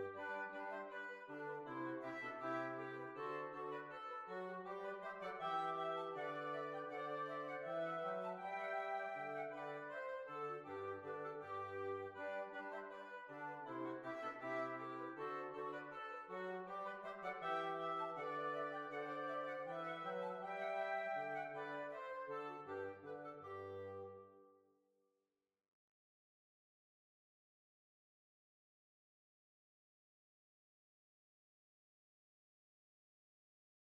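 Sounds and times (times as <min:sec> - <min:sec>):
hornpipe tune: 0:00.0 - 0:24.4.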